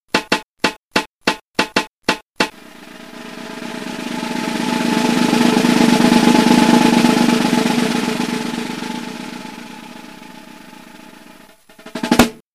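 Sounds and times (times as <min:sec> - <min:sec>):
snare drum: 0:00.1 - 0:02.6, 0:03.2 - 0:12.4.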